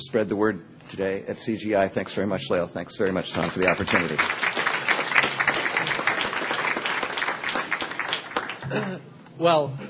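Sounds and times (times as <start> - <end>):
speech: 0.0 - 4.5, 8.7 - 9.8
audience applause: 3.3 - 8.8.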